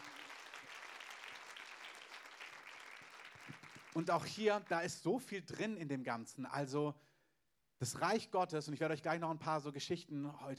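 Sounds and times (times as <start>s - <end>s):
audience applause: 0.0s - 4.3s
speech: 4.0s - 7.1s, 7.8s - 10.5s.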